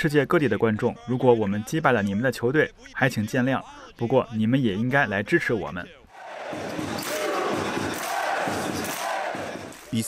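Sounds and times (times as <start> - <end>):
speech: 0.0 - 6.8
football fans shouting and chanting: 6.1 - 9.9
drum beats: 6.2 - 10.0.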